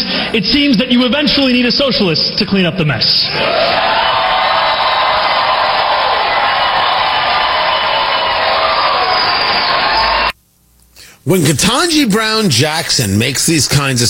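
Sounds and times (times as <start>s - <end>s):
speech: 0.0s - 4.1s, 11.2s - 14.0s
large crowd cheering and roaring: 3.3s - 10.4s.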